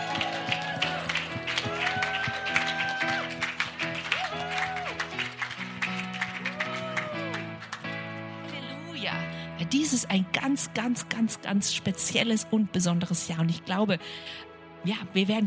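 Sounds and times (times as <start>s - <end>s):
audience applause: 0.0s - 8.0s
speech: 9.7s - 15.4s.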